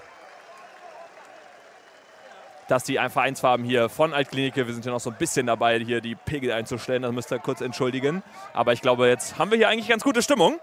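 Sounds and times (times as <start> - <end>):
stadium crowd applause from blue-and-white fans at a club match: 0.0 - 10.6
speech: 2.7 - 10.6.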